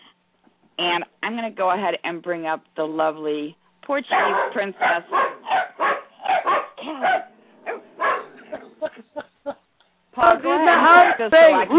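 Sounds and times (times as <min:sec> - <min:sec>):
speech: 0:00.8 - 0:05.4, 0:10.2 - 0:11.7
dogs barking in the house: 0:04.1 - 0:09.0, 0:10.7 - 0:11.7.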